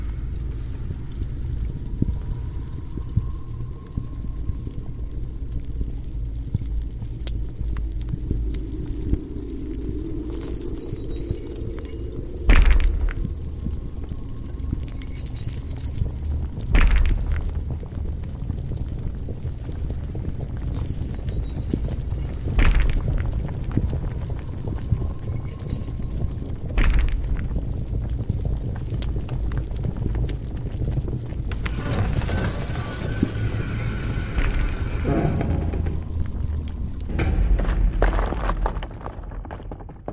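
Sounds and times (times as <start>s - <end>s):
deep rumbling: 0.0s - 40.1s
hissing flame-like surge: 31.5s - 37.0s.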